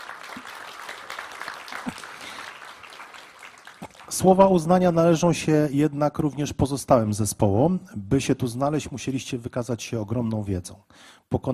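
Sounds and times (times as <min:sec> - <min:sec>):
crowd applauding: 0:00.0 - 0:04.9
speech: 0:04.1 - 0:11.5.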